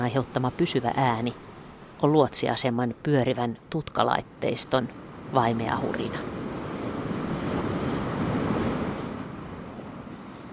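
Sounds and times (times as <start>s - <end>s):
speech: 0.0s - 6.4s
faint wind-like rumble: 0.0s - 10.5s
swells breaking and washing over shoreline rocks: 5.1s - 10.4s.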